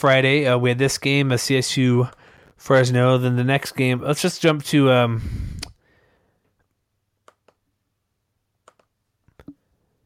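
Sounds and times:
speech: 0.0 - 5.4
mouse clicks while clicking through browser tabs: 8.6 - 9.6.

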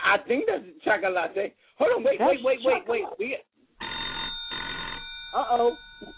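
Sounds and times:
speech: 0.1 - 3.5, 5.3 - 6.1
telephone ringing for an incoming call: 3.8 - 6.1.

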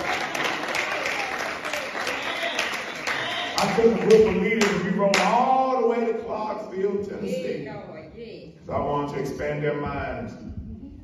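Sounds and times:
audience applause: 0.0 - 5.4
speech: 3.8 - 10.5.

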